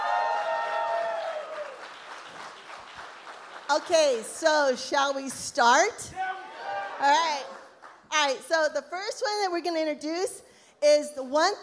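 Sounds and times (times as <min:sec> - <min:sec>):
voices cheering: 0:00.0 - 0:01.8, 0:06.1 - 0:07.6
audience applause: 0:00.0 - 0:04.1
speech: 0:03.7 - 0:06.2, 0:07.0 - 0:11.6.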